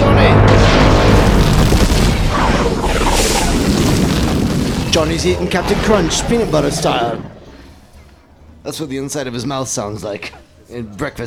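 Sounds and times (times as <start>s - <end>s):
seismic charge explosion boom: 0.3s - 8.3s
warbling downward-sweeping tones: 2.2s - 9.2s
speech: 5.0s - 7.4s, 8.6s - 11.2s.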